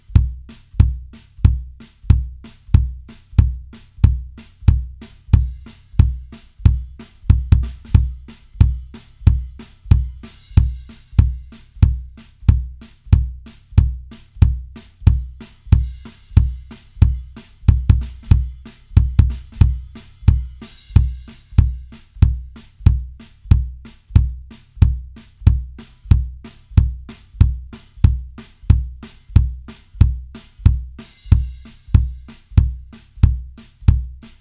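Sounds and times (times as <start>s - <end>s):
kick drums: 0.0s - 34.4s.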